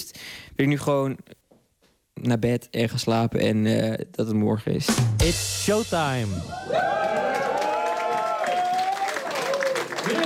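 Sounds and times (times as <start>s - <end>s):
speech: 0.6s - 1.4s, 2.2s - 7.1s
voices cheering and whooping: 6.5s - 10.2s
crowd clapping: 6.7s - 10.2s.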